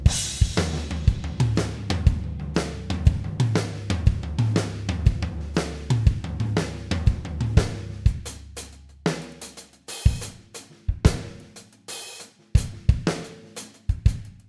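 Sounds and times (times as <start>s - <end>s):
dry drums: 0.0s - 14.4s.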